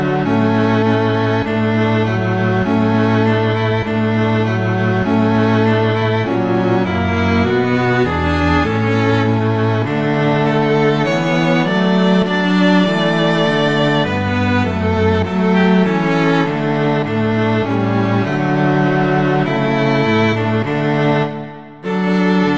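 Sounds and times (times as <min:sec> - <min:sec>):
first violin in a quartet: 0:00.0 - 0:22.5.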